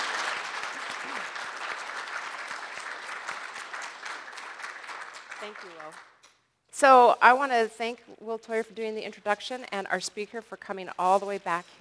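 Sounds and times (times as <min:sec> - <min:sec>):
audience applause: 0:00.0 - 0:06.1
speech: 0:05.4 - 0:06.1, 0:06.8 - 0:11.7.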